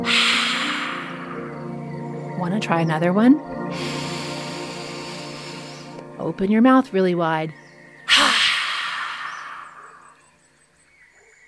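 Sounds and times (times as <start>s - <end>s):
breathy exhale imitating a lion's roar: 0.0s - 1.6s, 3.7s - 6.0s, 8.1s - 10.1s
speech: 2.4s - 4.0s, 6.2s - 7.6s.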